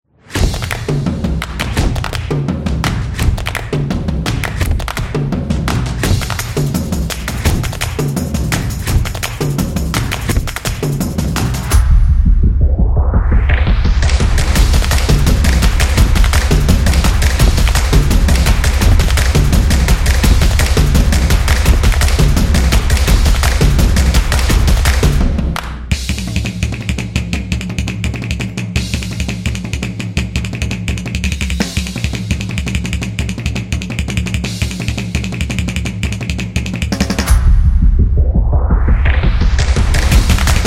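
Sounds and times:
energetic drumming: 0:00.3 - 0:40.6.

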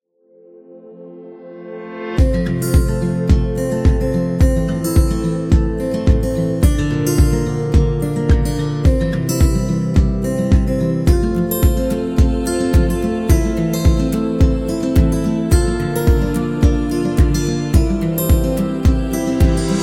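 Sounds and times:
upbeat acoustic indie music: 0:02.2 - 0:19.8.

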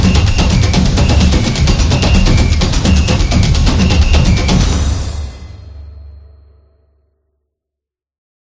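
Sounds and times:
samba music: 0:00.0 - 0:05.7.

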